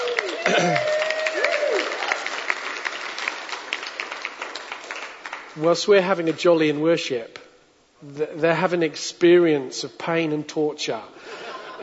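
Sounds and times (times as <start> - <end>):
church congregation applauding its worship teams: 0.0 - 5.9
speech: 5.6 - 7.4, 8.0 - 11.5.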